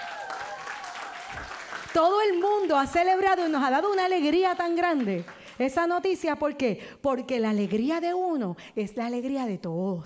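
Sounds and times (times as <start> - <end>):
group applause: 0.0 - 6.1
speech: 2.0 - 10.0.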